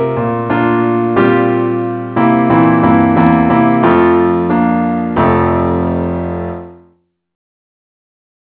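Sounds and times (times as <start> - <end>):
keyboard in the key of F: 0.0 - 6.8.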